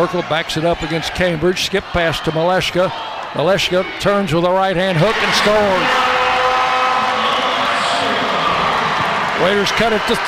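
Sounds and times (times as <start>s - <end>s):
speech: 0.0s - 6.2s, 9.4s - 10.2s
basketball crowd cheering: 0.0s - 10.2s.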